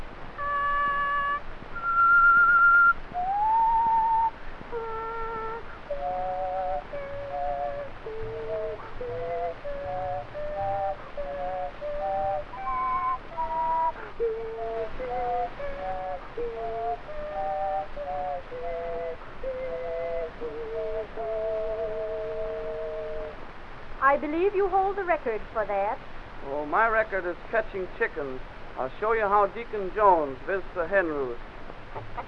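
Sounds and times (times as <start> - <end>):
person whistling several stacked tones in a wandering melody: 0.4 - 23.3
speech: 24.2 - 31.5.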